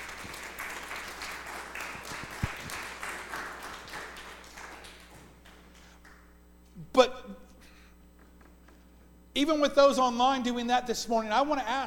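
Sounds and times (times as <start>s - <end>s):
audience applause: 0.0s - 6.2s
speech: 9.4s - 11.8s.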